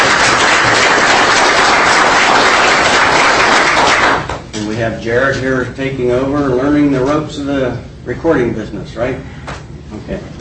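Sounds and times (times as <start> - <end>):
audience applause: 0.0 - 4.4
speech: 4.8 - 10.3.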